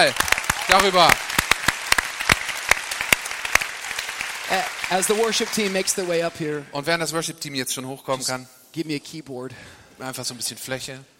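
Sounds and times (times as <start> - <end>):
speech: 0.0 - 1.3, 4.5 - 11.1
crowd clapping: 0.0 - 6.8.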